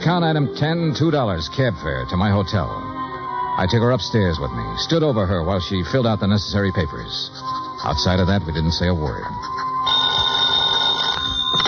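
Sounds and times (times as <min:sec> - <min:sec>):
speech: 0:00.0 - 0:03.0, 0:03.6 - 0:09.6
telephone bell ringing: 0:09.8 - 0:11.6.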